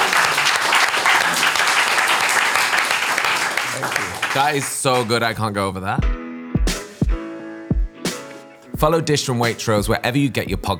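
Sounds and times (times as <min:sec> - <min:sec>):
round of applause from a small group: 0:00.0 - 0:05.2
speech: 0:04.4 - 0:06.1, 0:08.8 - 0:10.7.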